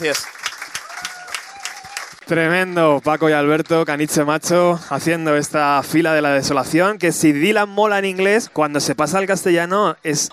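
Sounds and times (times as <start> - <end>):
speech: 0.0 - 0.4, 2.3 - 10.3
audience applause after a band's song: 0.0 - 5.2.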